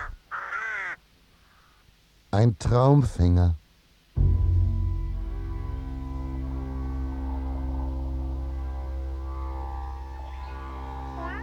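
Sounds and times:
raven on a man's shoulder cawing: 0.0s - 1.8s, 4.3s - 11.4s
speech: 2.3s - 3.6s.

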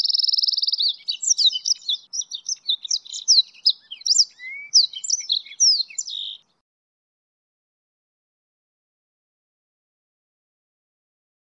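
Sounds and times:
goldfinch and canary hybrid singing a high varied warble: 0.0s - 6.6s.

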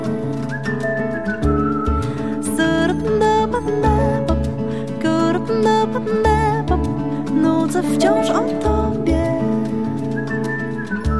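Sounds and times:
person whistling a slow melody: 0.0s - 4.2s, 8.0s - 11.1s
dense instrumental backing: 0.0s - 11.1s
speech: 3.6s - 4.3s, 7.4s - 9.1s.

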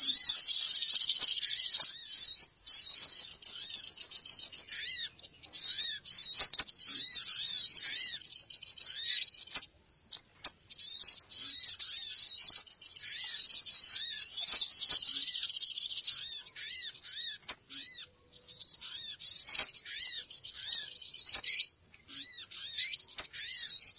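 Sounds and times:
birds chattering: 0.0s - 23.9s.

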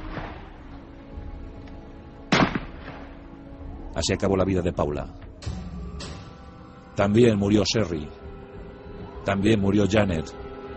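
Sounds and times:
low rumbling background: 0.0s - 10.7s
rifle shots fired at a person: 2.3s - 3.1s
speech: 4.0s - 5.6s, 7.0s - 8.2s, 9.2s - 10.4s.

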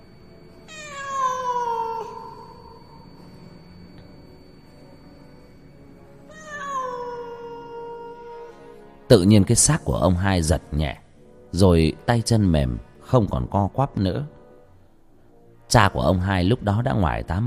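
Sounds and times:
cat yowling loudly: 0.7s - 3.0s, 6.3s - 8.7s
speech: 9.1s - 14.4s, 15.7s - 17.4s.

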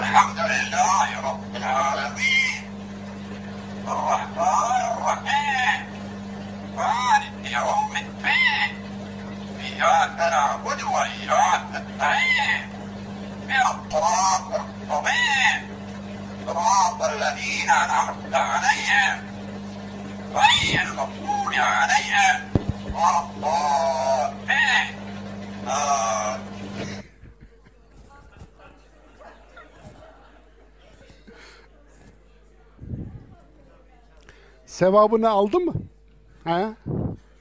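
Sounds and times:
parrot reciting a Quran verse, imitating a human voice: 0.0s - 2.8s, 3.8s - 19.4s, 20.2s - 27.1s
steady electrical hum: 0.0s - 37.3s
speech: 0.2s - 1.2s, 34.8s - 36.8s
laughter: 26.6s - 31.7s.

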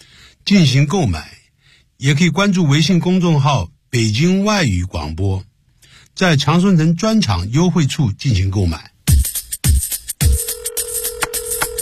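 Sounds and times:
speech: 0.5s - 1.4s, 2.0s - 5.5s, 6.2s - 8.9s
telephone ringing: 10.2s - 11.8s.

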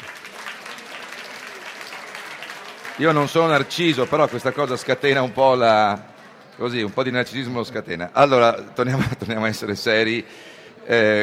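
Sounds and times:
audience applause at the Turin book fair, the Salone del Libro: 0.0s - 6.4s
speech: 3.0s - 11.2s.

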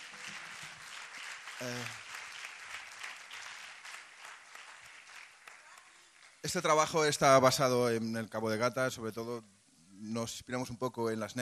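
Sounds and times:
audience applause: 0.0s - 6.4s
speech: 1.6s - 2.0s, 6.4s - 11.4s.

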